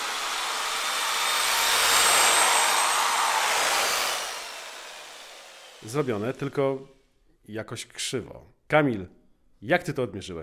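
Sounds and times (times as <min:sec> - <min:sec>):
electric drill drilling into wall: 0:00.0 - 0:06.8
speech: 0:05.8 - 0:10.4.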